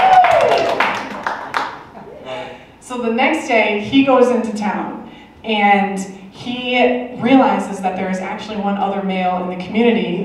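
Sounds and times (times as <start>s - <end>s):
group clapping hands: 0.0s - 2.0s
speech: 3.0s - 10.2s.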